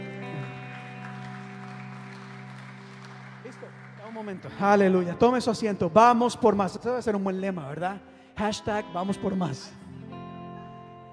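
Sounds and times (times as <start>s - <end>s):
crowd clapping: 0.0s - 6.0s
sustained keyboard chords: 0.0s - 11.1s
speech: 3.5s - 9.8s.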